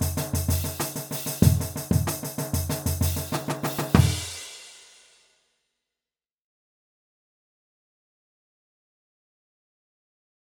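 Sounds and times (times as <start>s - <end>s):
brass playing a stadium groove: 0.0s - 4.5s.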